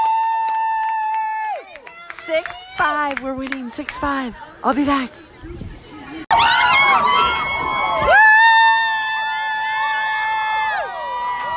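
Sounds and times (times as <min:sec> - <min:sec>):
crowd cheering wildly: 0:00.0 - 0:02.8, 0:06.3 - 0:11.5
speech: 0:02.3 - 0:05.7.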